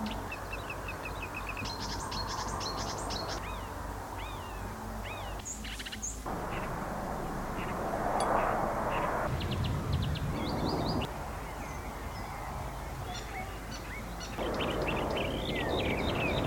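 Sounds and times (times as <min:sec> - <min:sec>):
marsh warbler singing: 0:00.0 - 0:06.8, 0:07.5 - 0:16.4.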